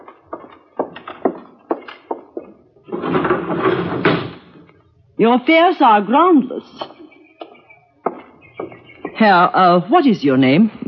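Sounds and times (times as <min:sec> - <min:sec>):
wooden knocks and clunks of a hotel window being opened: 0:00.0 - 0:04.8, 0:06.8 - 0:09.4
speech: 0:05.2 - 0:06.9, 0:09.2 - 0:10.8.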